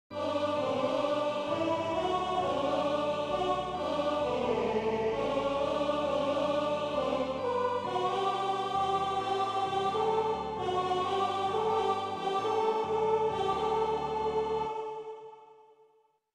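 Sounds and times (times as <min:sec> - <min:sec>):
four-voice choral Alleluia singing: 0:00.1 - 0:15.9.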